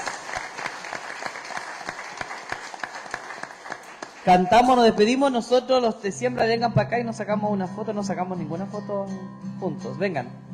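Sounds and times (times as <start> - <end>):
audience applause: 0.0 - 4.8
speech: 4.2 - 10.4.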